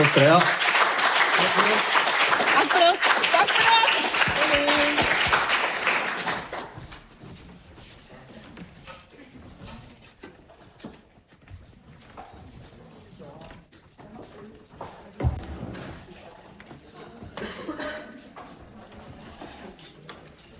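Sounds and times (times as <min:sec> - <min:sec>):
audience applause: 0:00.0 - 0:06.8.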